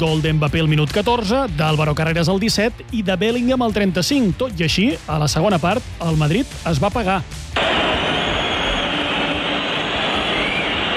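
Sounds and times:
speech: 0:00.0 - 0:08.0
Bernabéu stadium crowd whistling at their team: 0:07.6 - 0:10.9.

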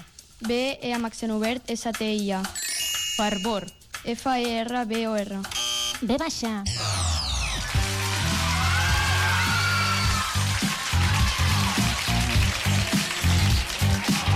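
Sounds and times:
speech: 0:00.4 - 0:07.1
applause cheering on contestants: 0:07.2 - 0:14.3.

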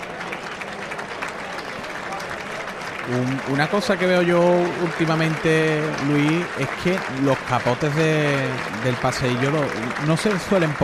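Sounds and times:
bullring crowd applauding in an ovation: 0:00.0 - 0:10.8
murmur of voices: 0:00.0 - 0:10.8
speech: 0:03.1 - 0:10.8.

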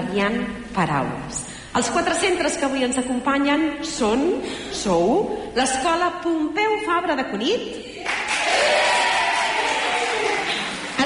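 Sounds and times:
speech: 0:00.1 - 0:07.9
schoolchildren applauding and cheering at a school radio event: 0:08.0 - 0:11.0.

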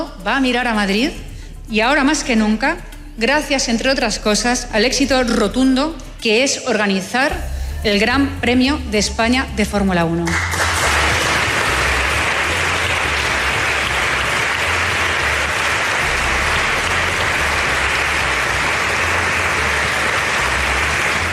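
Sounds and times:
speech: 0:00.2 - 0:10.6
audience applause: 0:10.3 - 0:21.3.

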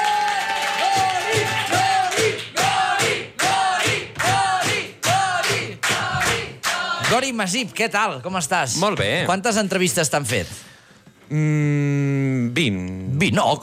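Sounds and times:
audience cheering and whooping: 0:00.0 - 0:02.1
clapping: 0:00.0 - 0:07.2
rhythmic shouts: 0:00.0 - 0:07.5
speech: 0:07.2 - 0:10.7, 0:11.3 - 0:13.6.

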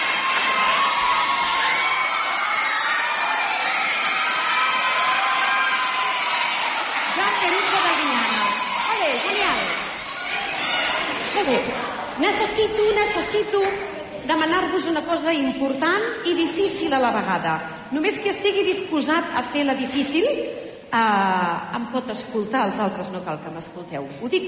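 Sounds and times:
audience applause and cheering for schoolchildren: 0:00.0 - 0:12.1
speech: 0:11.4 - 0:24.4.

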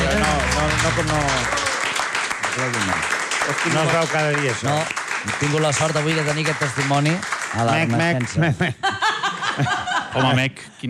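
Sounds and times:
crowd applause: 0:00.0 - 0:08.4
speech: 0:00.8 - 0:01.6, 0:02.6 - 0:09.0, 0:09.6 - 0:10.8
laughter: 0:08.2 - 0:10.6.

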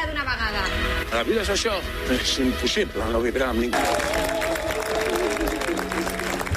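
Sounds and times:
speech: 0:00.5 - 0:04.3
audience applause after film screening: 0:03.8 - 0:06.5.

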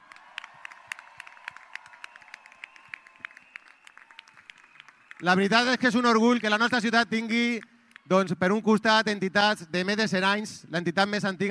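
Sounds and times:
audience applause: 0:00.0 - 0:06.6
speech: 0:05.2 - 0:11.5.

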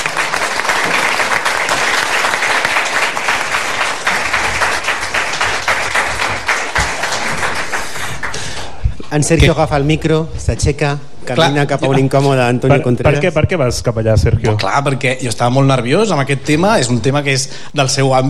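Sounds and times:
audience applause: 0:00.0 - 0:08.7
speech: 0:09.2 - 0:18.2.

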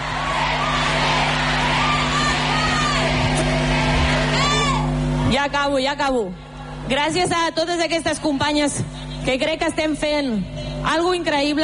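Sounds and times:
crowd chanting at a women's team's Champions League title celebration: 0:00.0 - 0:04.8
speech: 0:05.4 - 0:11.6.

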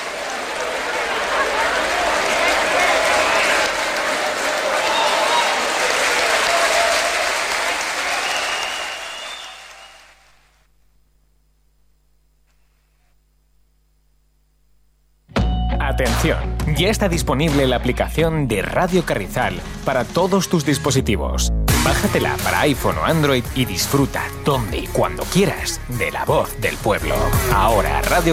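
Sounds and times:
audience applause: 0:00.0 - 0:10.5
speech: 0:16.2 - 0:28.3.

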